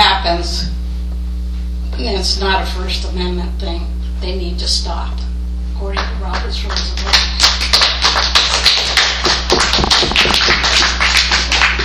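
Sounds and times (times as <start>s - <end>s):
low steady hum: 0.0s - 11.8s
speech: 2.0s - 7.6s
crowd applauding: 6.7s - 11.8s.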